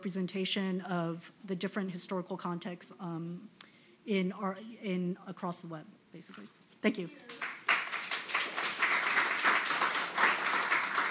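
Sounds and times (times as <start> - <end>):
speech: 0.0 - 7.5
crowd applause: 7.3 - 11.1.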